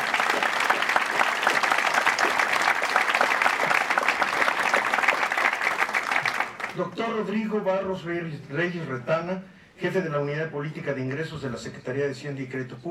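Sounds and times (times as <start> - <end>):
audience applause: 0.0 - 6.8
speech: 6.8 - 12.8.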